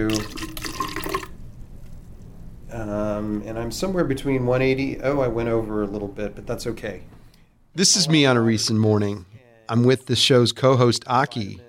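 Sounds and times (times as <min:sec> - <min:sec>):
speech: 0:00.0 - 0:00.4, 0:03.2 - 0:07.2, 0:07.8 - 0:11.6
liquid pouring into a bottle: 0:00.0 - 0:01.3.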